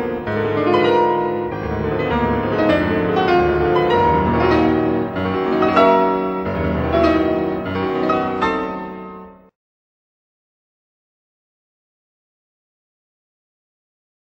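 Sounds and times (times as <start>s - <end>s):
romantic music: 0.0s - 9.5s.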